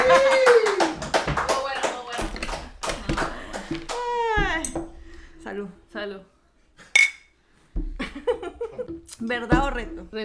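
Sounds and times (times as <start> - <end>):
small group hand clapping: 0.0 - 4.3
speech: 9.2 - 10.2.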